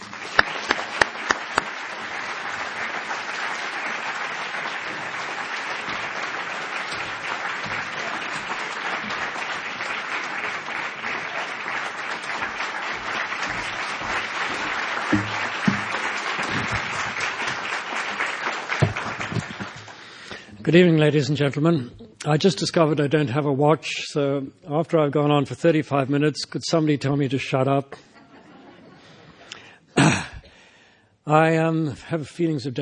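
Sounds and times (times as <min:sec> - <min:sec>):
audience applause welcoming an author at an evening talk: 0:00.0 - 0:20.4
speech: 0:20.7 - 0:28.1, 0:31.3 - 0:32.7
laughter: 0:28.0 - 0:29.6.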